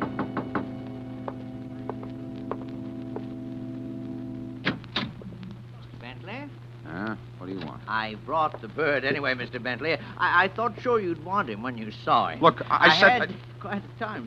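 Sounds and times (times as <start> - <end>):
knocking on door: 0.0 - 2.7
speech: 7.9 - 14.2.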